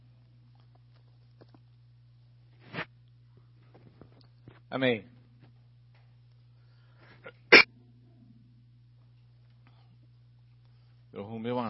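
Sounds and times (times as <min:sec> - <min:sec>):
speech: 0:04.7 - 0:05.2
sharp forceful cough: 0:07.2 - 0:07.7.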